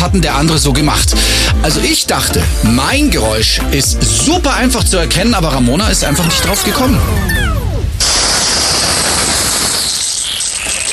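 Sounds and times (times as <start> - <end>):
speech: 0.0 - 7.4
garden hose spraying water: 8.0 - 10.9.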